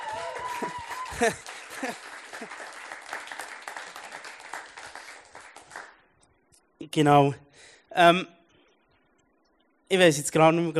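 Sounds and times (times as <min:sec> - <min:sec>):
audience applause: 0:00.0 - 0:06.0
laughter: 0:00.4 - 0:02.8
speech: 0:00.6 - 0:02.6, 0:06.9 - 0:08.4, 0:09.9 - 0:10.7.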